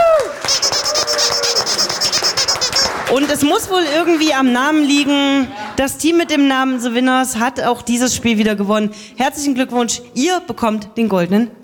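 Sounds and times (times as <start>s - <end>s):
audience applause: 0.0s - 4.3s
speech: 3.1s - 11.6s.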